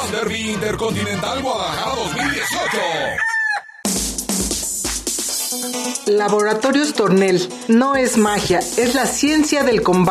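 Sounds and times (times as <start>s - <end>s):
speech: 0.1s - 3.3s, 5.6s - 10.0s
fighting rooster crowing at a cockfighting tournament: 2.1s - 3.9s.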